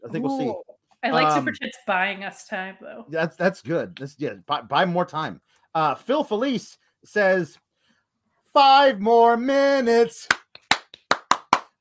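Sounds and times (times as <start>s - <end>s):
speech: 0.1s - 7.6s, 8.5s - 10.4s
hands clapping: 10.2s - 11.7s.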